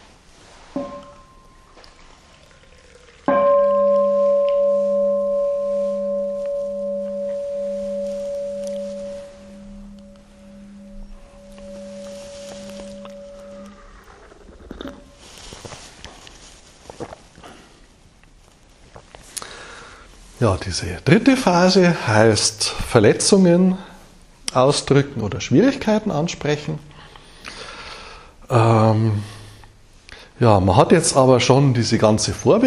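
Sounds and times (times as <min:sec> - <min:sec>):
quiet rustling: 0:00.0 - 0:02.4, 0:03.7 - 0:19.4
bell ringing: 0:00.8 - 0:01.7, 0:03.3 - 0:14.1
speech: 0:20.4 - 0:23.9, 0:24.5 - 0:26.9, 0:29.0 - 0:29.3, 0:30.4 - 0:32.6.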